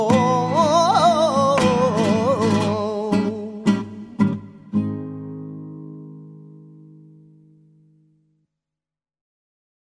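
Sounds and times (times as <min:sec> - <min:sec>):
flamenco music in fandango style: 0:00.0 - 0:07.5.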